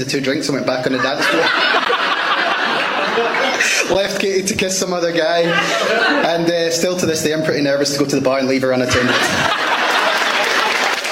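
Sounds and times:
speech: 0.0s - 2.4s, 3.2s - 9.8s
laughter: 0.6s - 7.0s, 8.8s - 11.0s
audience applause: 9.5s - 11.0s.

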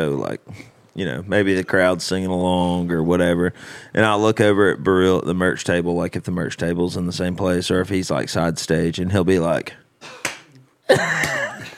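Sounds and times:
speech: 0.0s - 10.2s, 10.9s - 11.4s
loud cupped-hand clapping: 10.2s - 10.6s, 11.2s - 11.5s.

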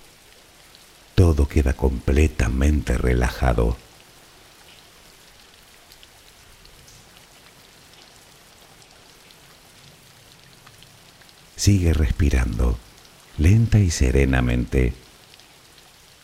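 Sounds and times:
steady rain: 0.0s - 16.2s
speech: 1.3s - 3.8s, 11.6s - 15.0s.

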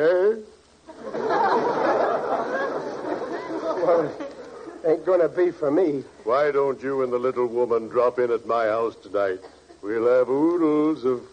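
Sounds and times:
laughter: 0.9s - 4.8s
party crowd chatter: 1.6s - 5.0s
speech: 5.1s - 11.3s.

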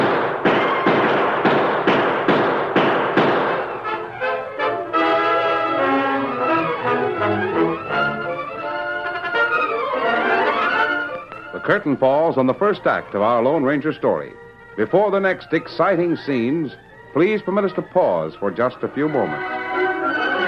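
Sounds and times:
gunshots in a radio drama shootout: 0.0s - 4.0s
dramatic orchestral music: 3.4s - 16.1s, 16.8s - 20.4s
speech: 11.7s - 19.6s.

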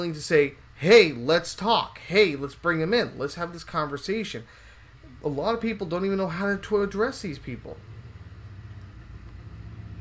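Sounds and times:
speech: 0.0s - 4.6s, 5.2s - 7.9s
neighbor's motorcycle engine passing: 7.7s - 10.0s.

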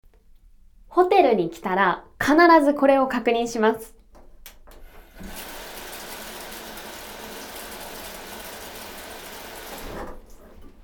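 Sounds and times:
speech: 1.0s - 4.0s
shower water running: 4.8s - 10.8s.

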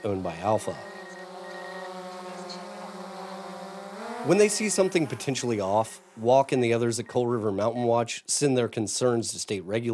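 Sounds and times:
speech: 0.0s - 1.0s, 4.2s - 9.9s
drone flying overhead: 0.0s - 6.9s.

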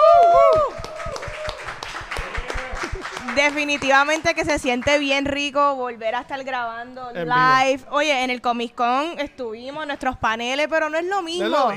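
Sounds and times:
audience applause: 0.0s - 4.3s
speech: 3.4s - 11.7s.

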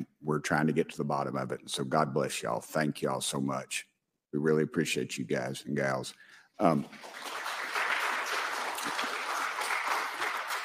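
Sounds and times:
speech: 0.3s - 7.4s
audience clapping: 6.6s - 10.6s.

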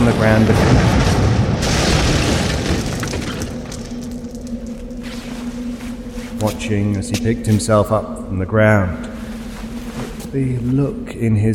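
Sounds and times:
crash of smashing through a building: 0.0s - 4.9s
speech: 0.1s - 1.0s, 6.4s - 9.1s, 10.3s - 11.5s.

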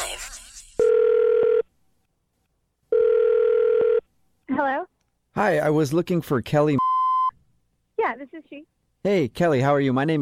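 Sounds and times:
telephone ringing on the line: 0.8s - 1.7s, 2.9s - 4.0s
speech: 4.6s - 6.8s, 8.6s - 10.2s.

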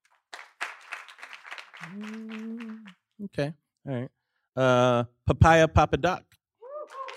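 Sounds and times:
audience applause: 0.2s - 3.0s
speech: 1.8s - 6.3s.

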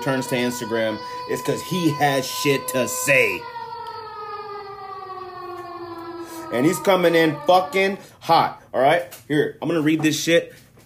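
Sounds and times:
speech: 0.0s - 3.5s, 6.5s - 10.6s
alarm siren sound effect: 0.0s - 8.2s.

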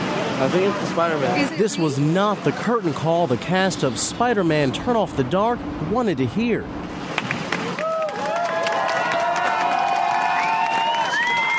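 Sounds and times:
speech: 0.4s - 6.9s
shaken theater audience clapping: 7.0s - 11.5s.

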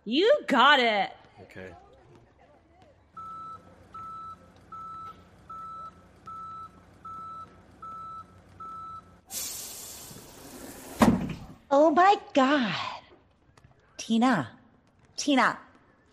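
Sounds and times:
speech: 0.0s - 1.8s, 11.7s - 12.9s, 14.1s - 14.6s, 15.2s - 15.7s
truck low engine rumble: 3.1s - 9.3s
truck reversing alarm beeps: 3.2s - 9.2s
hissing air burst: 9.3s - 11.2s.

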